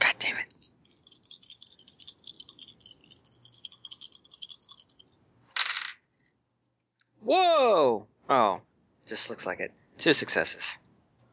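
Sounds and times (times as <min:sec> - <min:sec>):
dice rattling and landing: 0:00.3 - 0:06.0
speech: 0:08.3 - 0:10.8.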